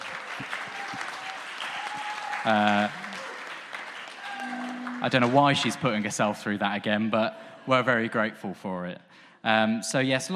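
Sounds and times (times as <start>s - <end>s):
round of applause: 0.0s - 6.0s
speech: 2.4s - 3.0s, 5.0s - 10.3s.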